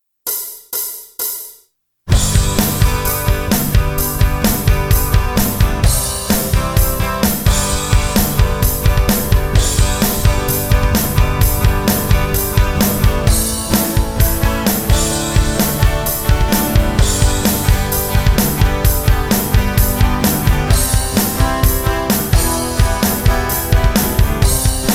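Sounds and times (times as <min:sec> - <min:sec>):
acoustic guitar music: 0:02.1 - 0:24.9.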